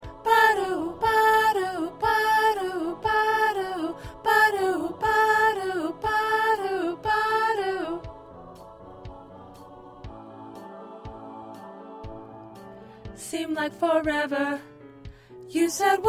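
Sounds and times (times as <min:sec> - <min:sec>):
second soprano singing: 0:00.0 - 0:16.0.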